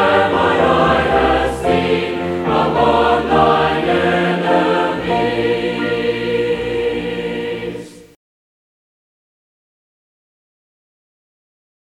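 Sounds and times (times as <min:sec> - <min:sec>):
choir singing a hymnal chorale: 0:00.0 - 0:08.2.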